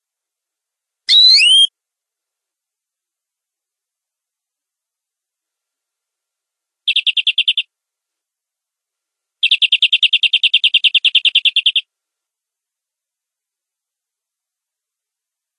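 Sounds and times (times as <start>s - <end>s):
domestic canary giving long rolling song: 1.1s - 1.7s, 6.9s - 7.6s, 9.4s - 11.9s.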